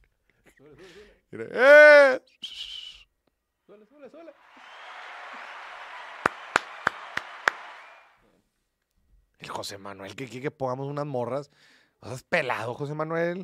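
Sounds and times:
speech: 0.6s - 2.7s, 3.7s - 4.8s, 9.4s - 13.4s
sharp whistle-like tone: 2.4s - 3.1s
applause sound effect: 4.4s - 8.2s.

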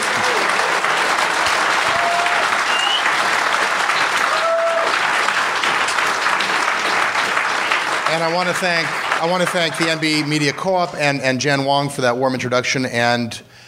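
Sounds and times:
room full of people applauding: 0.0s - 11.3s
faint whistle-like tones: 2.7s - 3.1s
speech: 8.2s - 13.5s.

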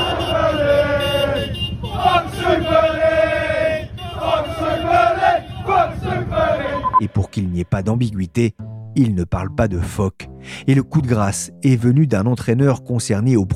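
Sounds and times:
Chelsea football fans chanting in protest: 0.0s - 7.0s
speech: 7.0s - 13.5s.

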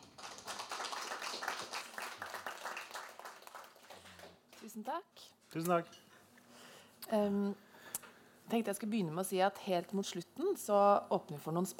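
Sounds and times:
audience applause: 0.0s - 4.4s
speech: 4.6s - 6.1s, 7.1s - 7.7s, 8.5s - 11.7s.

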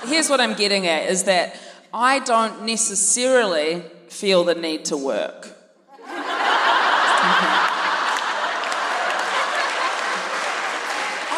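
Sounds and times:
speech: 0.0s - 5.6s
laughter: 5.9s - 11.3s
live audience applauding: 6.5s - 11.3s.

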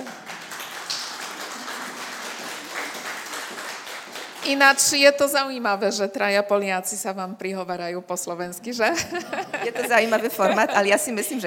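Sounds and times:
audience applause: 0.0s - 4.6s
speech: 4.5s - 11.4s
laughter: 8.8s - 11.4s.

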